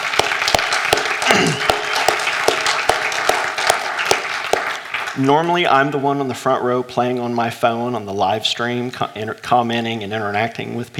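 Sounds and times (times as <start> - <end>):
audience applause: 0.0 - 5.9
speech: 5.2 - 10.9.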